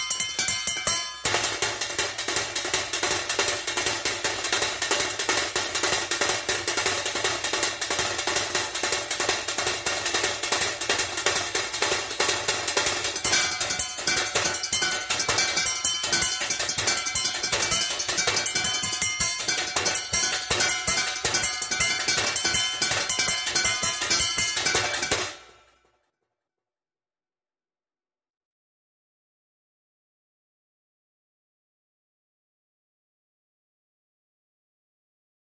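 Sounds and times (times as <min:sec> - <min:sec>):
high drums: 0:00.0 - 0:25.8.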